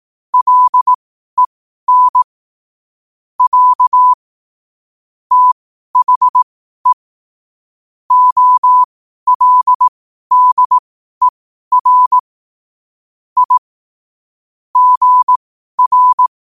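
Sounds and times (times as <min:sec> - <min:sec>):
morse code at 5 wpm: 0:00.4 - 0:00.9, 0:01.9 - 0:02.3, 0:03.4 - 0:04.2, 0:05.3 - 0:06.4, 0:08.1 - 0:12.2, 0:13.4 - 0:13.6, 0:14.8 - 0:16.3.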